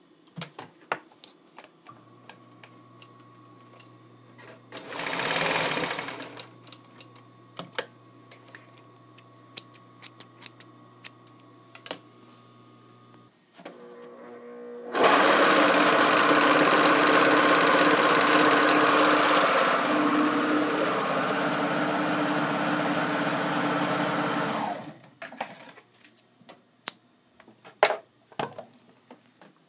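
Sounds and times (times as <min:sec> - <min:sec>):
sewing: 0:04.7 - 0:06.5, 0:14.9 - 0:25.0.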